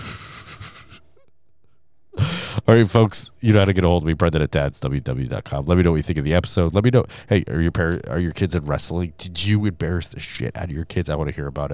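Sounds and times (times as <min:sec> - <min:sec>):
nose blowing into a microphone: 0:00.0 - 0:01.1
speech: 0:02.7 - 0:11.7.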